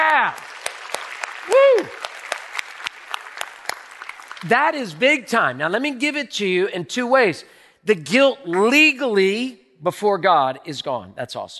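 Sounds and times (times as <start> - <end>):
audience clapping: 0.0 - 5.6
speech: 4.4 - 11.5.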